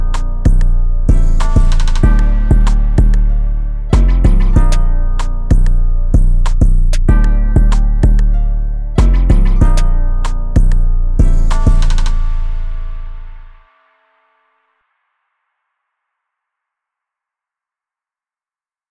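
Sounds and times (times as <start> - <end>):
Detroit type rap beat: 0.0 - 13.6.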